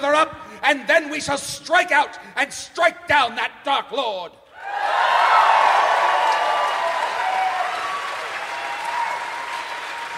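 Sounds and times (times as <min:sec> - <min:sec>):
speech: 0:00.0 - 0:05.0
crowd applauding: 0:04.8 - 0:10.1.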